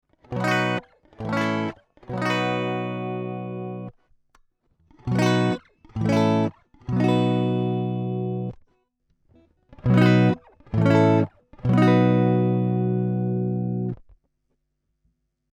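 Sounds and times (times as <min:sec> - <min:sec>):
Jazzmaster electric guitar recorded through DI: 0:00.2 - 0:03.9, 0:04.9 - 0:08.6, 0:09.7 - 0:14.1.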